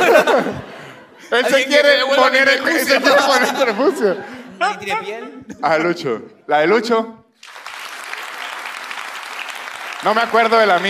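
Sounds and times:
laughter: 0.0s - 6.2s
speech: 0.4s - 7.2s, 10.0s - 10.8s
applause sound effect: 7.4s - 10.8s.

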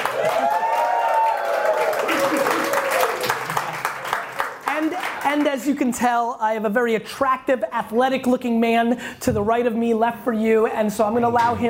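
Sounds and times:
live audience clapping: 0.0s - 5.9s
speech: 5.4s - 11.6s.

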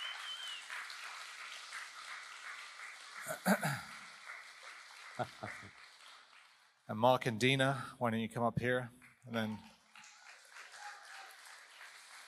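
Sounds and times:
audience round of applause: 0.0s - 6.7s, 9.4s - 12.2s
speech: 3.3s - 3.9s, 5.2s - 5.8s, 6.9s - 9.7s.

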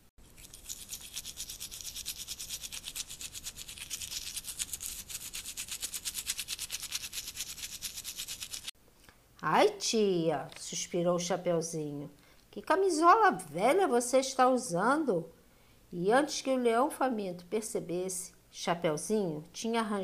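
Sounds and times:
teeth being brushed with a toothbrush: 0.2s - 8.7s
speech: 9.5s - 20.0s.

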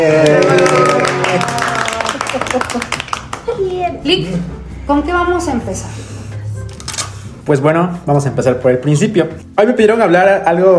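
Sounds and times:
speech: 0.0s - 0.4s, 2.6s - 3.0s, 4.0s - 6.1s, 7.5s - 10.7s
audience applause: 0.0s - 3.6s.

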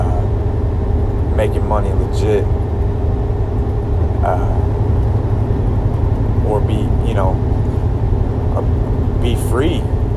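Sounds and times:
road noise: 0.0s - 10.1s
truck engine rumble driving down the road: 0.0s - 10.1s
speech: 1.4s - 2.6s, 4.2s - 4.8s, 6.5s - 7.5s, 8.6s - 10.0s.

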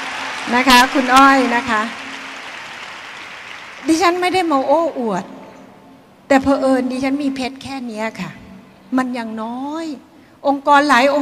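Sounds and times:
audience applause: 0.0s - 5.0s
speech: 0.5s - 2.0s, 3.8s - 5.4s, 6.3s - 11.2s.

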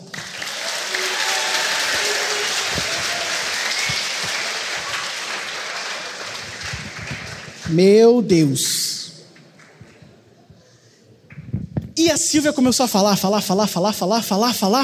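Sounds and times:
audience applause: 0.0s - 7.7s
speech: 7.7s - 8.9s, 12.3s - 14.8s.

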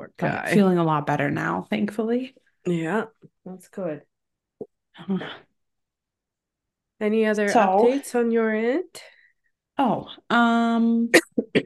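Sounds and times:
speech: 0.1s - 4.1s, 5.0s - 5.5s, 7.0s - 9.1s, 9.8s - 11.6s
coughing: 11.1s - 11.6s.

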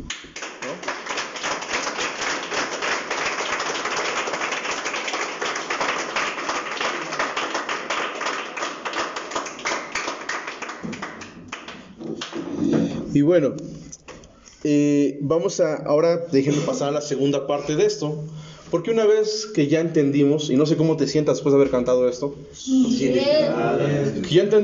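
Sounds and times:
crowd clapping: 0.0s - 12.5s
speech: 13.2s - 13.7s, 14.6s - 24.6s.

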